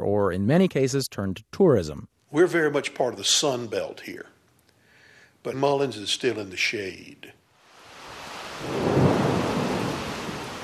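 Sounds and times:
speech: 0:00.3 - 0:04.4, 0:05.4 - 0:07.4, 0:08.6 - 0:08.9
downpour of heavy rain: 0:07.6 - 0:10.6.

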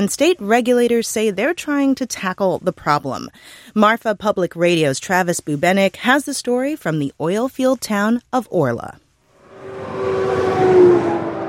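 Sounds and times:
speech: 0:00.0 - 0:09.0
big rig trucks barreling down a highway: 0:09.3 - 0:11.4
low horn-like drone: 0:09.3 - 0:11.4.

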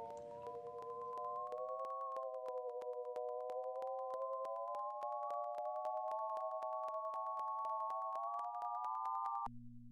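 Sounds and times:
data sonification bell-like layered tone: 0:00.0 - 0:09.4.

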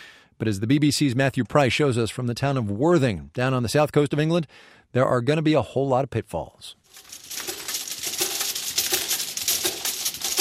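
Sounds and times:
speech: 0:00.4 - 0:07.2
thumbnail-sized glass vials going through a labelling machine: 0:06.9 - 0:10.4.

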